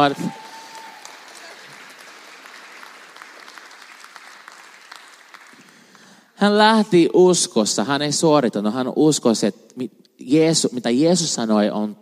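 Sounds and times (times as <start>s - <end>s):
speech: 0.0s - 0.4s, 6.4s - 12.0s
audience applause: 0.0s - 6.1s.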